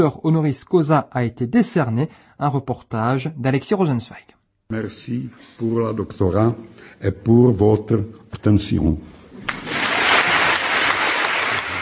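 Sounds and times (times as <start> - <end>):
speech: 0.0 - 9.2
students in a full lecture hall applauding Václav Havel: 9.4 - 11.8.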